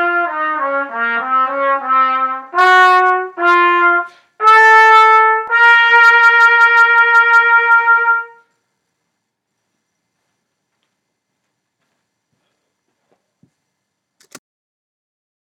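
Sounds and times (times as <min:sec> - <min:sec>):
trumpet playing etudes: 0:00.0 - 0:08.5.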